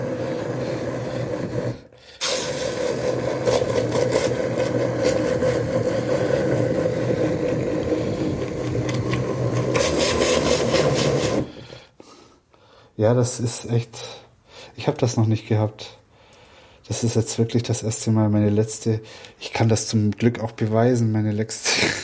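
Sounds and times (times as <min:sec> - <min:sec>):
hand blender blending thick rhubarb jam: 0:00.0 - 0:11.7
speech: 0:13.0 - 0:14.2, 0:14.8 - 0:16.0, 0:16.9 - 0:22.0.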